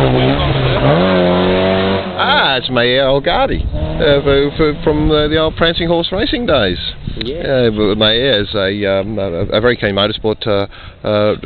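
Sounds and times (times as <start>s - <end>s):
Porsche 944 race car engine passing: 0.0s - 3.0s, 3.6s - 5.4s
speech: 2.5s - 11.4s.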